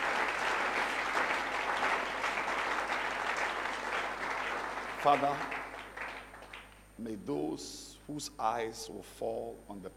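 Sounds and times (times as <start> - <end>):
congregation at a church conference clapping: 0.0 - 6.9
speech: 5.0 - 5.6, 7.0 - 9.9.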